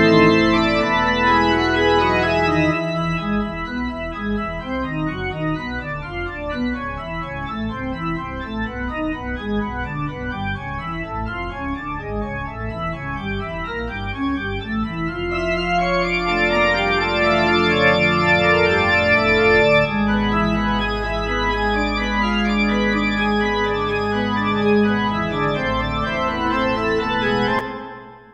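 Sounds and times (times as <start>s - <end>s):
synthesized pipe organ on a Roland JV2080: 0.0s - 28.3s.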